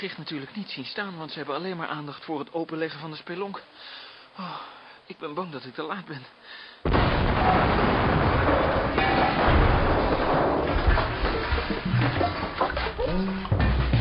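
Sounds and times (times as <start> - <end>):
speech: 0.0 - 7.9
crackling debris: 6.8 - 13.9
heavy explosion: 6.9 - 12.6.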